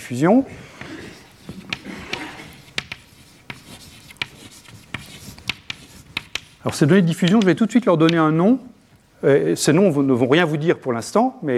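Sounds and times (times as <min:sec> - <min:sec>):
speech: 0:00.1 - 0:00.8, 0:06.6 - 0:11.5
lecturer writing terms down by hand: 0:00.8 - 0:08.4.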